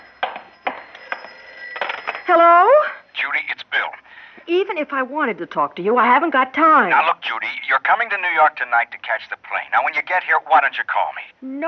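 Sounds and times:
telephone ringing: 0.0s - 4.1s
faint steady hum: 0.0s - 11.6s
speech: 2.3s - 2.6s, 4.5s - 11.6s.

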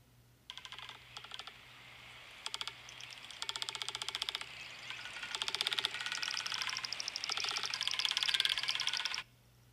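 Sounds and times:
low steady hum: 0.0s - 9.7s
magnificent frigatebird rattling call: 2.9s - 9.2s.

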